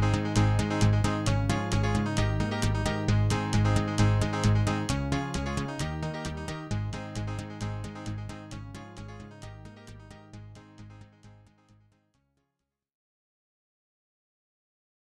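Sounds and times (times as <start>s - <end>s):
children's theme music: 0.0s - 10.6s.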